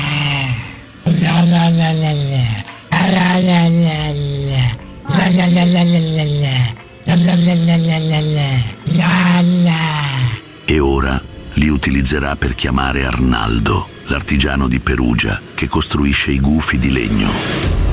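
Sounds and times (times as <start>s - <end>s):
dog growling while owner moves its mouth: 0.0s - 10.5s
speech: 12.1s - 17.8s.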